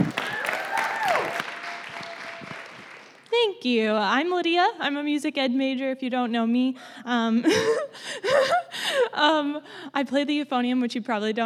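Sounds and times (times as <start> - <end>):
audience applause and cheering at a Chi Alpha gathering: 0.0 - 3.4
speech: 3.6 - 11.4.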